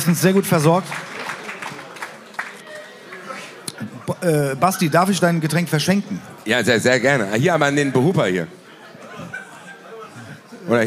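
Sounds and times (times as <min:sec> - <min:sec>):
speech: 0:00.0 - 0:01.1, 0:04.2 - 0:08.6
audience applause: 0:00.0 - 0:03.5
laughter: 0:08.6 - 0:10.8.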